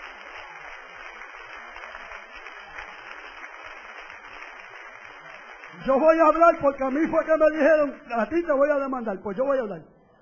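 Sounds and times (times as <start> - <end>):
audience applauding: 0.0 - 7.9
speech: 5.8 - 9.9.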